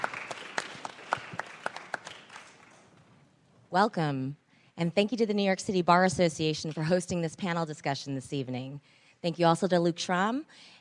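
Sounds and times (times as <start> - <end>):
audience applause: 0.0 - 2.9
speech: 3.7 - 10.8.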